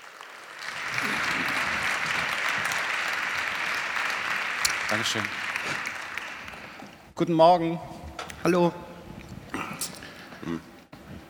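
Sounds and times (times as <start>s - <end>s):
audience applause: 0.0s - 7.1s
speech: 4.9s - 5.9s, 7.2s - 8.8s.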